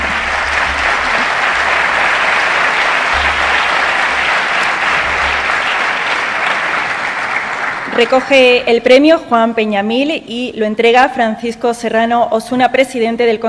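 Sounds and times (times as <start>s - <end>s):
audience applause at award ceremony: 0.0s - 8.6s
speech: 8.0s - 13.4s.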